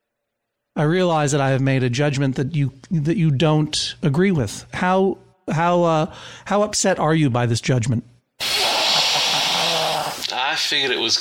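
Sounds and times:
speech: 0.8 - 8.1, 10.6 - 11.1
snake hissing: 8.4 - 10.5.

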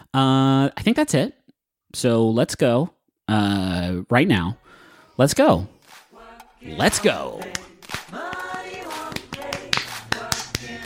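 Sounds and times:
speech: 0.2 - 5.8, 6.6 - 7.7
voices singing or calling out: 4.6 - 10.8
hand claps: 6.9 - 10.8.

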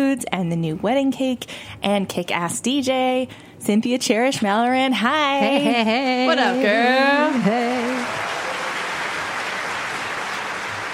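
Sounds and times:
speech: 0.1 - 8.3
audience applause: 7.2 - 10.9.

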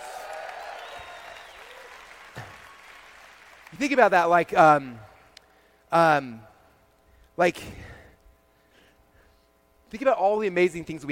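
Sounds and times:
audience applause: 0.0 - 3.9
speech: 3.8 - 5.1, 5.9 - 6.5, 7.4 - 7.9, 9.9 - 11.1.

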